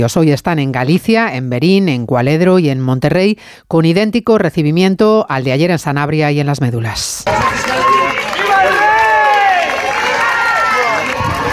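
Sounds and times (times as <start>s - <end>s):
speech: 0.0s - 8.0s
crowd applauding the King and Queen: 7.3s - 11.5s.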